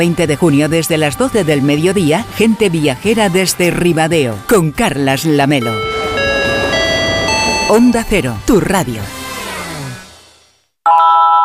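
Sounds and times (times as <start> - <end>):
speech: 0.0 - 6.0, 7.7 - 9.2
home alarm system activation electronic tone: 5.6 - 9.2
fading tonal sound: 5.6 - 9.7.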